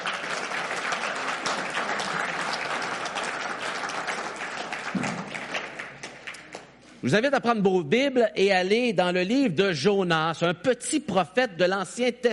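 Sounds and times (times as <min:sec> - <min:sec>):
audience applauding: 0:00.0 - 0:06.8
speech: 0:07.0 - 0:12.3.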